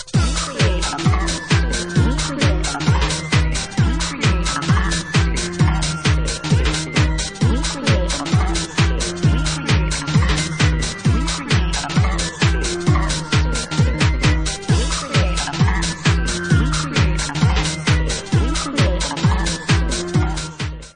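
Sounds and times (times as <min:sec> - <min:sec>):
atmosphere: 0:00.2 - 0:20.9.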